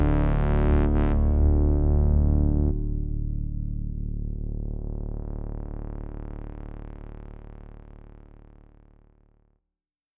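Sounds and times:
Sequential Pro3 paraphonic synthesizer: 0:00.0 - 0:07.0.

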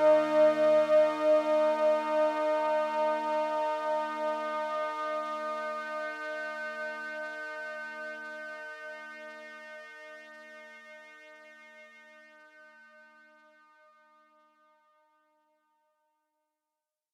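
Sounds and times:
band-pass filtered synthesizer pad: 0:00.0 - 0:08.9.

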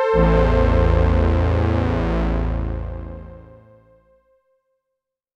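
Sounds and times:
synth saw strings: 0:00.1 - 0:03.9.

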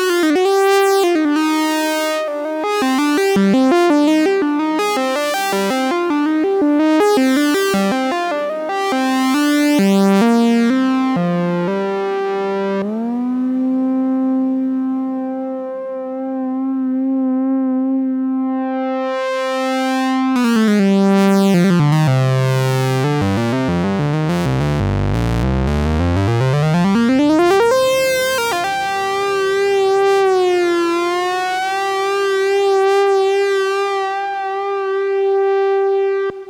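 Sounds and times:
Vermona 14 synthesizer solo: 0:00.0 - 0:36.4.

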